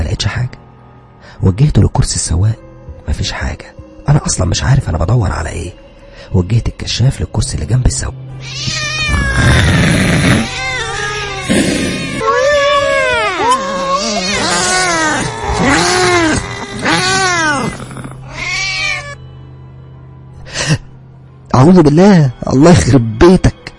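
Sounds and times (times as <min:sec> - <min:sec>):
speech: 0:01.4 - 0:10.5, 0:21.6 - 0:23.5
black cat yowling and meowing inside a car: 0:08.4 - 0:19.2.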